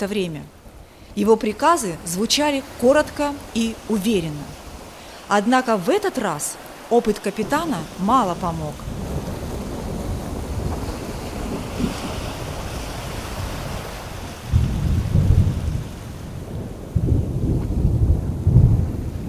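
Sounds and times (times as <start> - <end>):
speech: 0.0 - 0.6, 1.2 - 4.6, 5.3 - 8.9
steady wind: 0.0 - 19.2
stormy sea roaring: 0.0 - 19.2
deep rolling thunder: 8.7 - 19.2.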